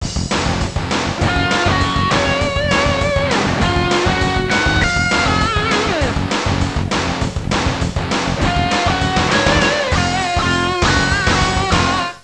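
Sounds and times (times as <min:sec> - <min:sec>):
rock music ringtone: 0:00.0 - 0:12.2.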